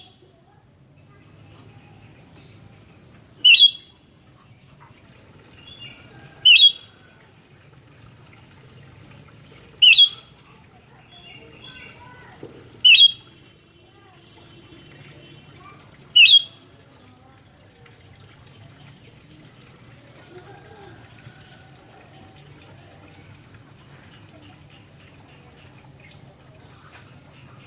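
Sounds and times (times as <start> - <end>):
Sooty-headed bulbul sharp notes: 3.5 - 3.9, 12.8 - 13.3, 16.1 - 16.6.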